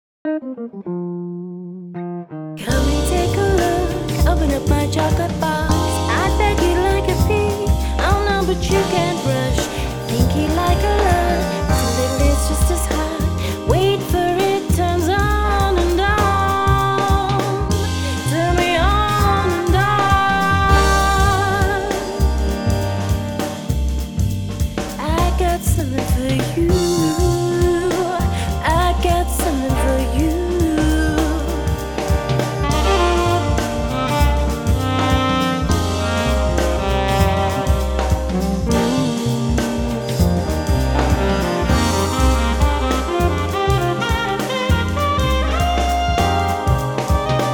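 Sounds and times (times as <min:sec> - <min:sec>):
jazz music: 0:00.3 - 0:47.5.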